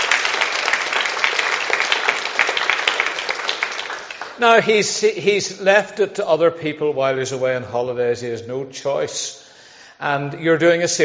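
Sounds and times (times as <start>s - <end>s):
round of applause: 0.0s - 4.8s
speech: 4.4s - 9.4s, 10.0s - 11.0s.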